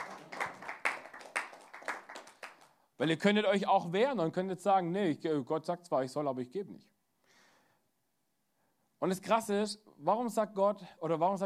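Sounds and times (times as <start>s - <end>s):
light audience applause from a small group: 0.0s - 2.8s
speech: 3.0s - 6.9s, 9.0s - 11.4s.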